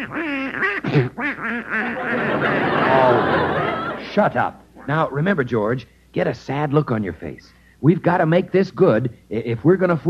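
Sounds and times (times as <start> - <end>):
duck quacking: 0.0 - 3.1
speech: 0.0 - 10.0
laughter: 1.8 - 4.5.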